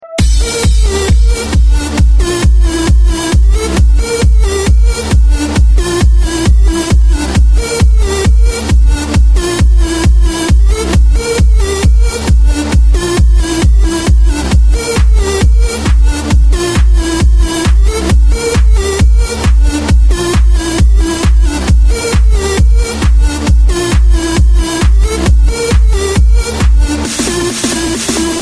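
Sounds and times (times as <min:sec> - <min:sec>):
electronic club bass beat: 0:00.0 - 0:28.4.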